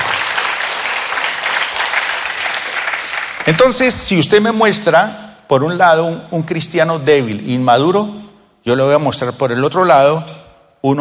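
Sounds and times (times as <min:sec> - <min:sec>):
audience applause: 0:00.0 - 0:03.6
speech: 0:03.5 - 0:10.9.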